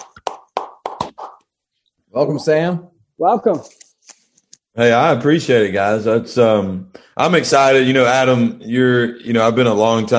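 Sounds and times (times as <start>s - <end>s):
hand clapping: 0.0s - 1.5s
speech: 2.1s - 3.8s, 4.8s - 10.1s.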